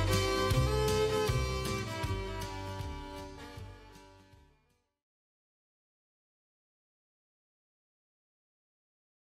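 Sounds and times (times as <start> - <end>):
country music: 0.0 - 4.7.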